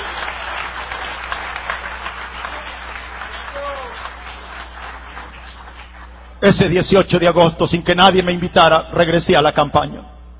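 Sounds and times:
audience applause: 0.0s - 6.4s
brief cheer: 2.4s - 4.4s
speech: 6.4s - 10.1s.

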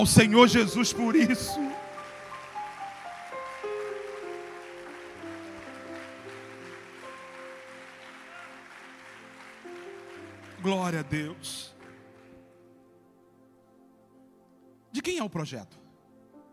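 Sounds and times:
speech: 0.0s - 1.8s, 10.7s - 11.7s, 15.0s - 15.8s
sustained keyboard chords: 0.0s - 16.5s
audience applause: 1.0s - 12.6s.

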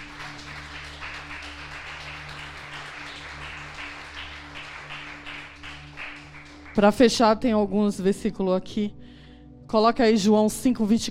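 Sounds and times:
audience applause: 0.0s - 6.9s
speech: 6.8s - 9.0s, 9.7s - 11.0s.

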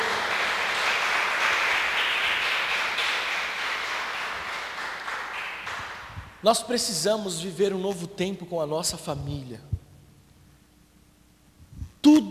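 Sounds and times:
audience applauding: 0.0s - 6.2s
speech: 6.4s - 9.7s.

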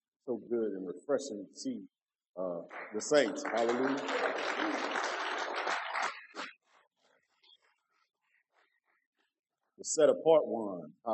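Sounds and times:
speech: 0.3s - 5.2s, 9.8s - 11.1s
audience hand clapping: 2.7s - 6.6s.

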